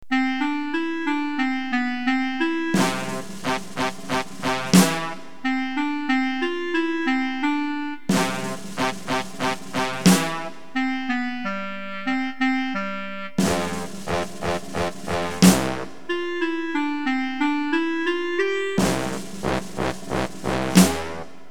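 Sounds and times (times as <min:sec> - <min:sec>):
opening fanfare: 0:00.1 - 0:21.3.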